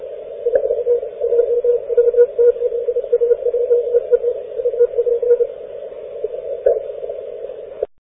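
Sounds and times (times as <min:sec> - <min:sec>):
morse code tones on 40m amateur radio band: 0:00.4 - 0:05.5.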